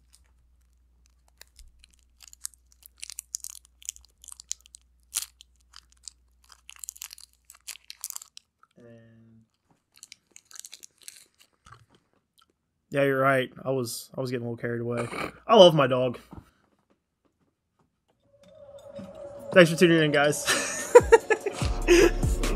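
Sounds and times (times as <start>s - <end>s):
person chewing a Snickers candy bar: 0.0s - 8.8s, 9.4s - 12.6s
speech: 12.9s - 16.4s, 19.6s - 21.1s
laughter: 20.3s - 22.4s.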